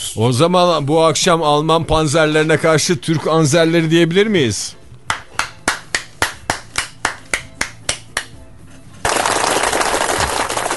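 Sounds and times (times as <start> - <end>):
speech: 0.2 - 4.8
sharp claps: 5.1 - 8.4, 9.0 - 10.7
applause sound effect: 9.1 - 10.7.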